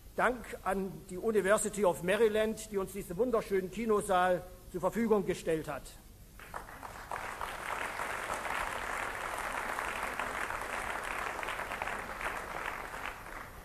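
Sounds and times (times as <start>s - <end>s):
speech: 0.2s - 6.0s
crowd applause: 6.4s - 13.6s.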